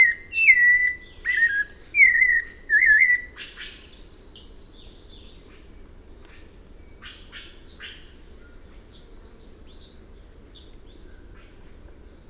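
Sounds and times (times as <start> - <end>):
White-necked Thrush song: 0.0 - 3.9.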